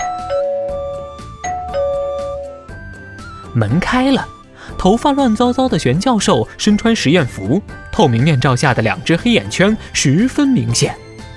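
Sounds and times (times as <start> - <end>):
doorbell ringing: 0.0 - 3.2
speech: 3.6 - 11.0.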